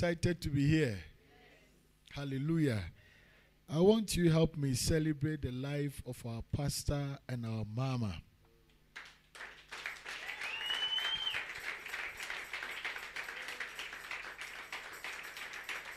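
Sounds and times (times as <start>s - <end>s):
speech: 0.0s - 1.1s, 2.1s - 3.0s, 3.7s - 8.3s
audience clapping: 8.9s - 15.9s
high whistle-like tone: 10.4s - 11.5s.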